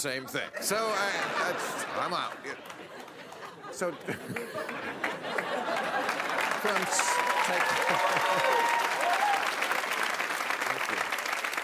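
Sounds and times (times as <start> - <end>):
speech: 0.0 - 2.8, 3.7 - 9.0
laughter: 0.2 - 9.2
audience applause: 0.9 - 11.6
faint voices and cheers: 6.6 - 9.6.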